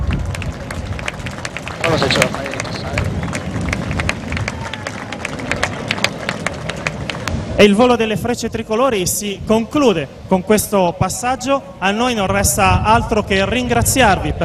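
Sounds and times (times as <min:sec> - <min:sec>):
audience applause: 0:00.0 - 0:08.0
speech: 0:02.0 - 0:02.4, 0:07.6 - 0:14.4.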